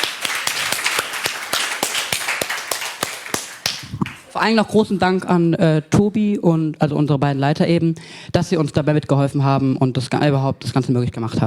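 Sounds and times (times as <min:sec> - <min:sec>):
applause for a presentation: 0:00.0 - 0:04.4
speech: 0:04.4 - 0:11.4.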